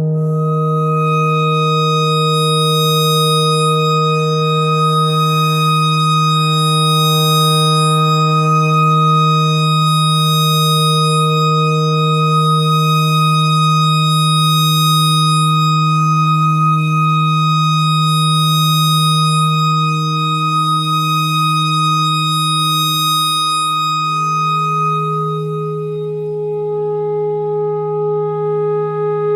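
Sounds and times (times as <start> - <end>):
clarinet notes: 0.2 - 29.3.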